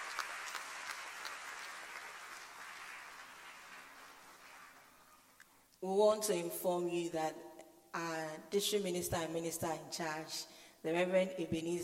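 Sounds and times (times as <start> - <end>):
audience applause: 0.0 - 5.3
speech: 5.8 - 11.8.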